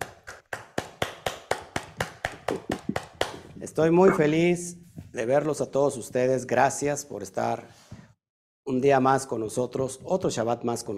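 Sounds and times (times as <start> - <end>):
applause, hand clapping: 0.0 - 4.3
speech: 3.6 - 7.8, 8.7 - 10.9.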